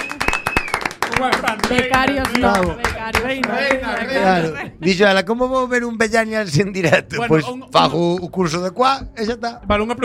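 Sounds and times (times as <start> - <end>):
audience applause: 0.0 - 4.4
speech: 1.2 - 10.0.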